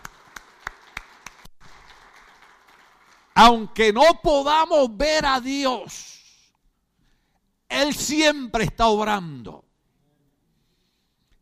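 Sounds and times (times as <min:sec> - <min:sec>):
audience applause: 0:00.0 - 0:03.4
speech: 0:03.4 - 0:06.1, 0:07.7 - 0:09.6.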